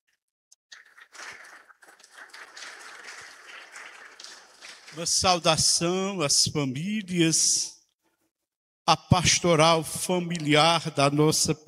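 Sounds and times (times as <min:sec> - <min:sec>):
audience applauding: 0:00.7 - 0:05.7
speech: 0:05.0 - 0:07.8, 0:08.9 - 0:11.6.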